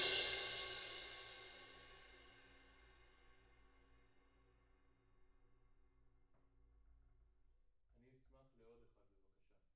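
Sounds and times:
music: 0.0s - 6.6s.

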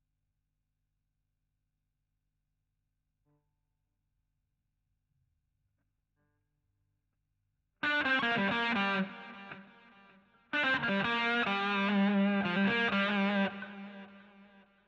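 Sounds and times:
guitar solo: 7.8s - 14.3s.

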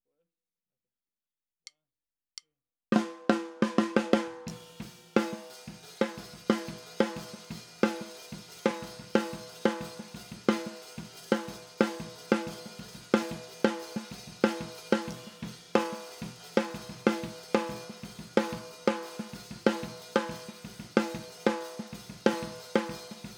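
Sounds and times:
snare drum: 3.0s - 23.3s.

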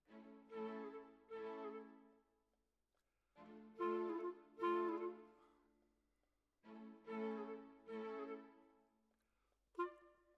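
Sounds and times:
clarinet: 0.5s - 2.2s, 3.7s - 5.7s, 7.0s - 8.8s, 9.8s - 10.3s.

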